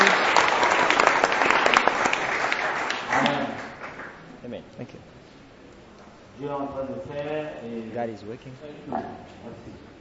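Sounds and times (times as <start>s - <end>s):
congregation at a church service applauding: 0.0s - 4.3s
speech: 4.8s - 5.2s, 6.4s - 9.9s.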